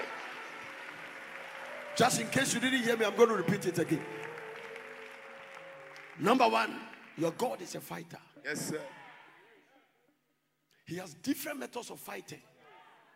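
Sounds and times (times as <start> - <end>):
audience clapping: 0.0 - 8.1
speech: 2.0 - 4.4, 6.2 - 9.0, 10.9 - 12.5.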